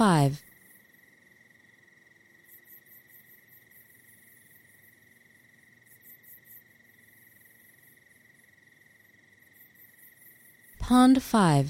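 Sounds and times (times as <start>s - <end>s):
speech: 0.0s - 0.5s, 10.9s - 11.6s
crickets trilling: 0.0s - 10.8s
faint pulsed insect chirping: 0.0s - 11.6s.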